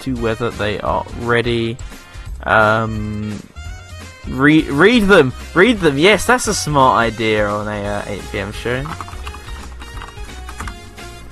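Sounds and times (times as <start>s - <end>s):
speech: 0.0s - 3.5s, 4.2s - 9.2s
computer keyboard typing: 8.5s - 11.3s.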